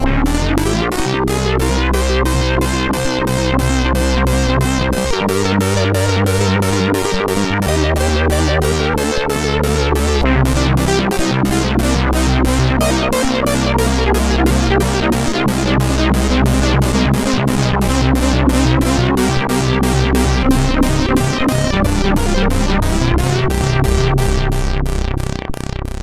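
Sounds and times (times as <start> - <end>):
SID CSG8580R5 chip music: 0.0 - 26.0.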